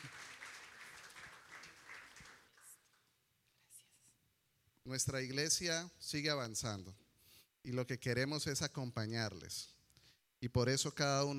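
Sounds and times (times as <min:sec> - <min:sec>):
audience applause: 0:00.0 - 0:02.8
speech: 0:04.9 - 0:07.0, 0:07.6 - 0:09.8, 0:10.4 - 0:11.3.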